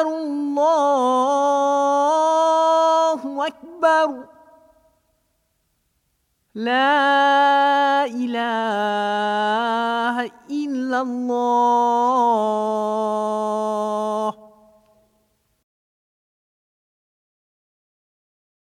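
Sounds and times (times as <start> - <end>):
Islamic call to prayer: 0.0 - 5.0, 6.6 - 15.2.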